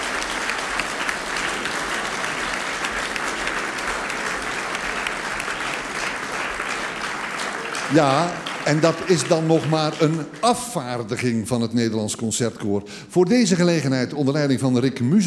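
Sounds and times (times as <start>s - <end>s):
audience applause for a choir: 0.0s - 11.4s
speech: 7.9s - 15.2s.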